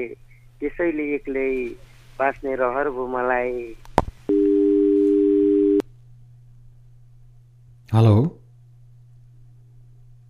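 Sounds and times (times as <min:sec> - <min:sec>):
speech: 0:00.0 - 0:04.4, 0:07.9 - 0:08.4
faint low hum: 0:00.0 - 0:10.2
telephone tone signalling a failed call: 0:04.3 - 0:05.8.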